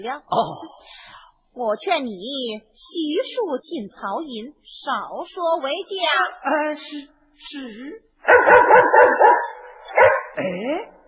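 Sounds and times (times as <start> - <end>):
speech: 0.0 - 1.0, 1.6 - 9.5, 10.4 - 11.0
dog barking: 8.2 - 10.4.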